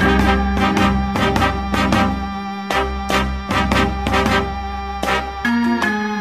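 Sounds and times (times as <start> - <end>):
horn loops: 0.0 - 6.1.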